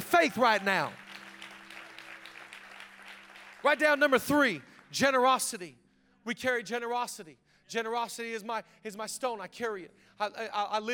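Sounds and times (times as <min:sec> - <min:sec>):
audience clapping: 0:00.0 - 0:05.3
speech: 0:00.2 - 0:01.0, 0:03.6 - 0:10.9.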